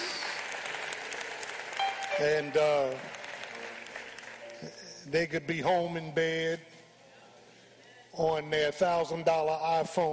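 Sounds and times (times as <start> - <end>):
audience hand clapping: 0.0 - 5.0
speech: 2.2 - 3.2, 4.6 - 6.7, 8.2 - 10.1.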